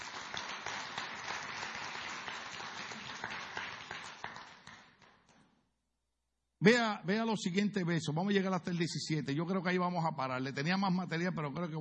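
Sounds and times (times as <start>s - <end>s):
audience applause: 0.0s - 5.2s
speech: 6.6s - 11.7s.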